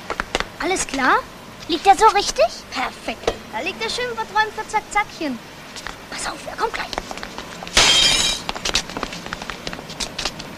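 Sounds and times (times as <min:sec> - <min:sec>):
speech: 0:00.6 - 0:07.2
glass window pane shattering after being hit by a football: 0:07.7 - 0:08.5
falling glass shards tinkling: 0:07.8 - 0:08.5.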